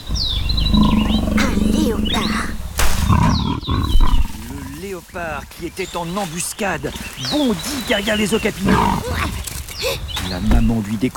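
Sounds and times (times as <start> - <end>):
birds chirping: 0.0 - 11.1
leopard purring growl from bushes: 0.1 - 4.8, 8.6 - 9.4
speech: 4.9 - 11.1.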